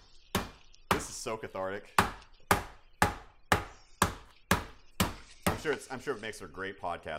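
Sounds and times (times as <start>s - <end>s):
hammering meat: 0.0s - 1.3s, 1.9s - 5.7s
speech: 1.2s - 2.2s, 5.6s - 7.1s.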